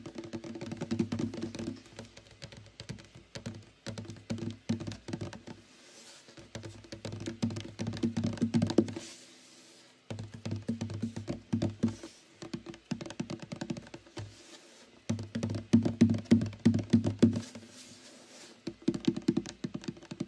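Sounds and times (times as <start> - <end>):
fast tapping on a guitar: 0.0 - 5.5, 6.4 - 9.0, 10.1 - 14.1, 15.1 - 17.5, 18.6 - 20.2.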